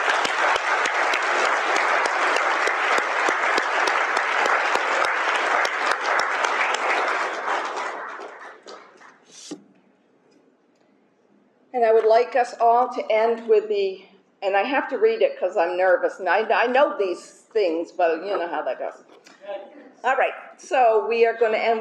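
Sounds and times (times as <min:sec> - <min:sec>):
audience applause: 0:00.0 - 0:09.5
speech: 0:12.3 - 0:19.1, 0:20.0 - 0:21.7.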